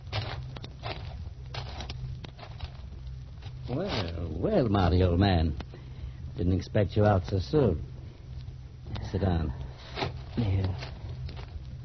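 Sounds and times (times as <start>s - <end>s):
footsteps crunching slowly along a gravel path: 0.0s - 4.2s, 9.8s - 11.6s
steady low hum: 0.0s - 11.8s
speech: 3.7s - 5.7s, 6.4s - 7.9s, 9.1s - 9.6s, 10.4s - 10.8s.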